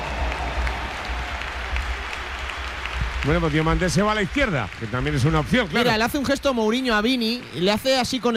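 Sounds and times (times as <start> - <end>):
low stadium crowd rumble: 0.0 - 3.9
Bernabéu stadium crowd applauding a football player: 0.0 - 8.3
speech: 3.2 - 8.3.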